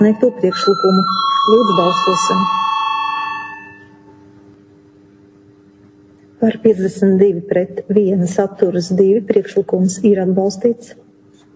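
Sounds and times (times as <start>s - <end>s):
speech: 0.0s - 2.7s, 6.4s - 11.0s
bell ringing in a parliament chamber to call members to a vote: 0.0s - 4.2s.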